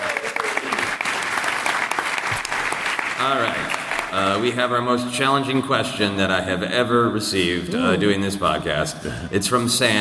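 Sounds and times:
applause: 0:00.0 - 0:04.5
speech: 0:03.2 - 0:09.9.

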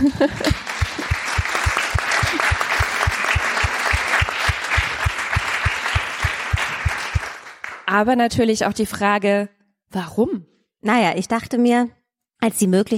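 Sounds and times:
speech: 0:00.0 - 0:00.6, 0:07.9 - 0:12.9
laughter: 0:00.0 - 0:05.0
audience applause: 0:00.0 - 0:07.9.

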